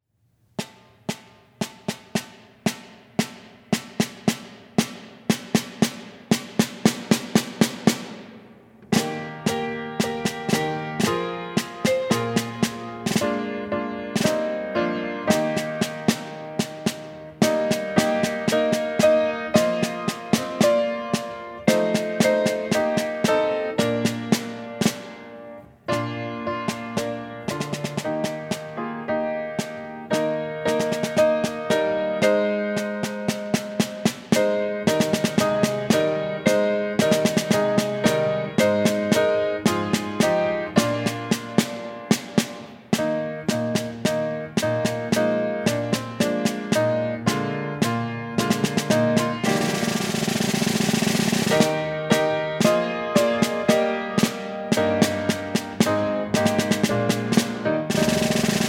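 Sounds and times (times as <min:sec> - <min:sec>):
snare drum: 0:00.4 - 0:58.6.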